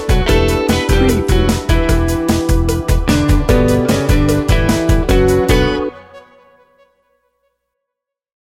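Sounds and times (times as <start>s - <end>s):
easy breezy music: 0.0s - 6.6s.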